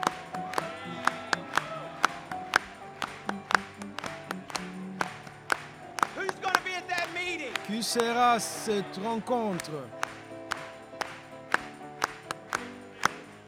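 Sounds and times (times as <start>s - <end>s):
rhythmic hand clapping at a religious gathering: 0.0s - 13.4s
speech: 7.8s - 10.0s.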